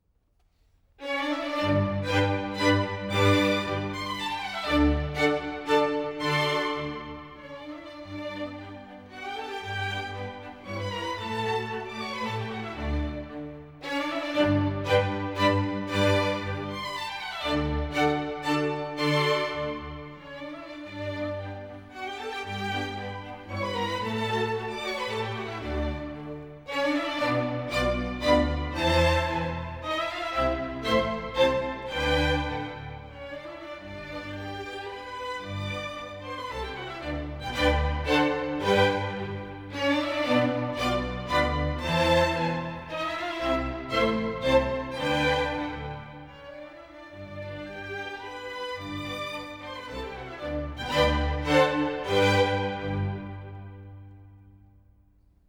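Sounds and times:
string quartet playing a minuet: 1.0 - 54.6.

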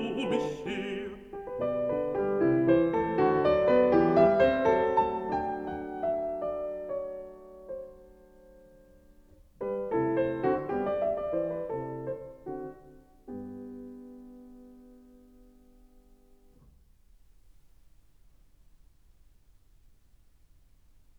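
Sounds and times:
person singing: 0.0 - 1.5
piano: 0.0 - 21.1.

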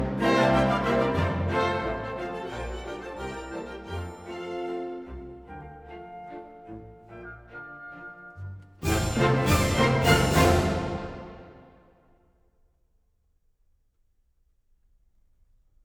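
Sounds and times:
orchestra playing in F major: 0.0 - 11.9.

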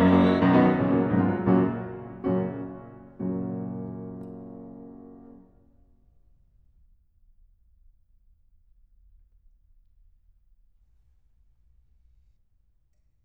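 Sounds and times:
person singing with piano: 0.0 - 4.2.

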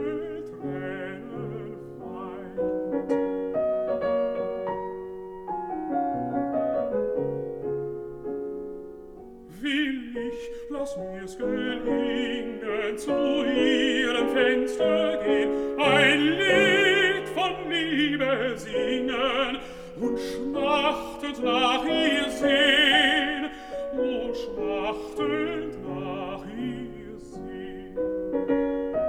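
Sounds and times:
person singing: 0.0 - 3.3, 9.5 - 28.2
piano: 0.0 - 29.0.

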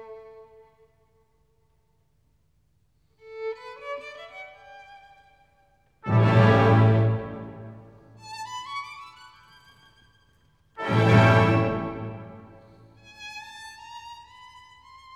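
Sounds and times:
violin concerto in B minor adagio movement: 0.0 - 0.8, 3.2 - 5.4, 6.0 - 15.1.

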